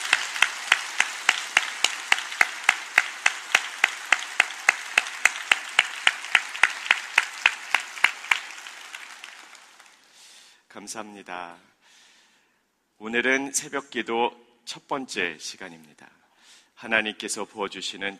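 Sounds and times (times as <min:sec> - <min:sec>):
audience applauding: 0:00.0 - 0:10.2
speech: 0:10.8 - 0:11.8, 0:13.0 - 0:16.2, 0:16.8 - 0:18.1.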